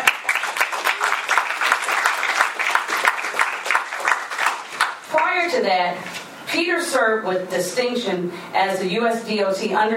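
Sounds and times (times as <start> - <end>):
audience applause: 0.0 - 5.1
speech: 5.4 - 9.9.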